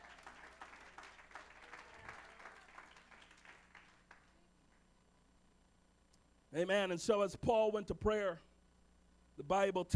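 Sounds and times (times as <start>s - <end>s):
audience clapping: 0.0s - 4.8s
speech: 6.5s - 8.5s, 9.4s - 9.9s.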